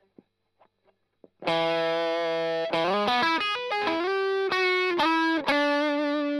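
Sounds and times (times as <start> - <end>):
strumming: 1.4 - 6.3.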